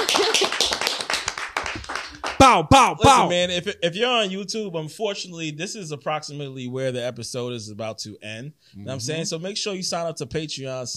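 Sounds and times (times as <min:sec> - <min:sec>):
clapping: 0:00.0 - 0:02.5
speech: 0:02.4 - 0:10.9.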